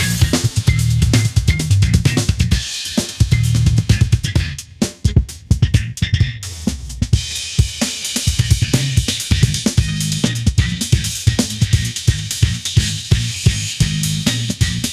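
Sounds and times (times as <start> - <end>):
funk groove: 0.0 - 14.9.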